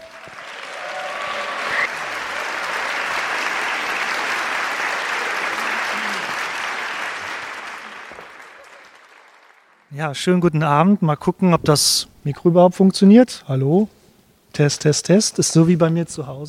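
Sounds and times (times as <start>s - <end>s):
audience applause welcoming a speaker at an evening event in Cologne: 0.0s - 9.9s
speech: 10.0s - 14.0s, 14.6s - 16.4s.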